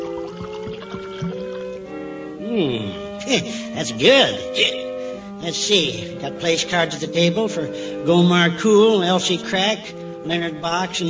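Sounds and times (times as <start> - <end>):
fermented kumquat juice punch poured from a big punch bowl: 0.0 - 1.9
speech: 2.6 - 4.8, 5.4 - 11.0.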